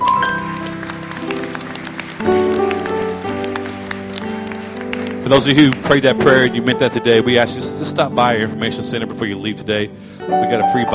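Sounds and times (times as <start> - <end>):
audience hand clapping: 0.0 - 7.3
speech: 5.3 - 10.9.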